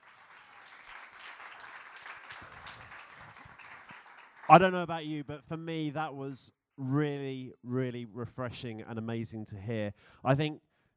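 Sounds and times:
audience applause for guests: 0.0 - 4.9
speech: 4.5 - 10.7.

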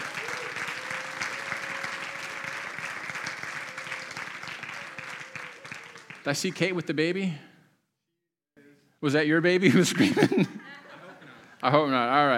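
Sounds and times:
audience applauding: 0.0 - 7.1
speech: 6.3 - 7.5, 9.0 - 10.6, 11.6 - 12.3
laughter: 9.7 - 11.8.

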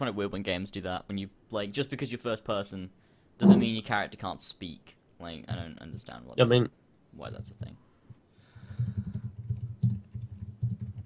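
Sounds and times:
speech: 0.0 - 7.9
typing on a computer keyboard: 8.6 - 11.0.

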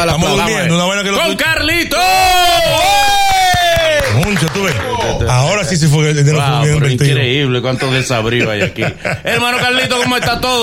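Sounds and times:
speech: 0.0 - 2.7, 4.3 - 10.6
crowd applause: 2.7 - 5.6
laughter: 7.5 - 10.6.

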